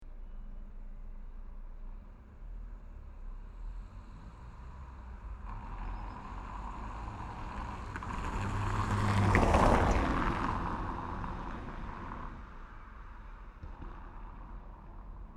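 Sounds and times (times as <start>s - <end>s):
single car passing on cobblestone road in Paris France: 2.4s - 15.3s.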